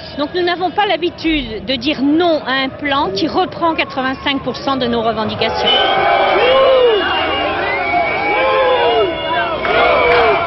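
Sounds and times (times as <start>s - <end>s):
speech: 0.2s - 6.5s
crowd of opponents booing at a march: 5.4s - 10.4s.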